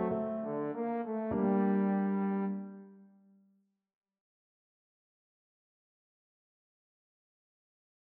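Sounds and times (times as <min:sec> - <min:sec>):
trombone playing a classical piano piece: 0:00.0 - 0:03.0.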